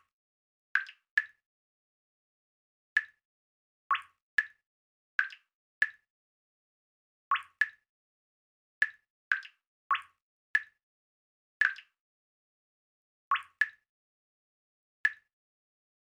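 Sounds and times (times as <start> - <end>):
liquid water in a cave: 0.8 - 1.4, 3.0 - 3.2, 3.9 - 4.6, 7.3 - 7.9, 8.8 - 10.8, 13.3 - 13.9, 15.1 - 15.3.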